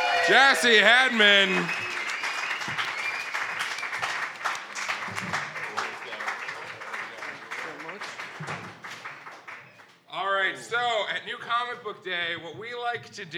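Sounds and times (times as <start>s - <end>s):
faint voices and cheers: 0.0s - 2.1s
audience applause: 0.0s - 9.9s
speech: 0.3s - 1.9s, 10.7s - 13.3s.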